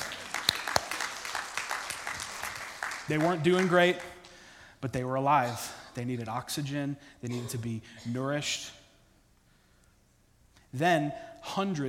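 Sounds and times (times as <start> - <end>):
audience applause during a talk: 0.0 - 4.3
speech: 3.1 - 4.1, 4.8 - 8.8, 10.7 - 11.8.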